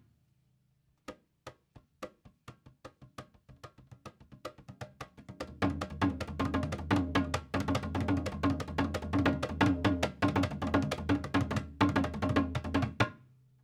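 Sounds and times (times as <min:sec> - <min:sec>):
jauk drum: 0:05.5 - 0:13.1.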